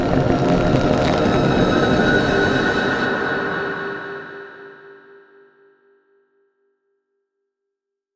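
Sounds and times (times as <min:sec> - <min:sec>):
soundscape: 0:00.0 - 0:05.4.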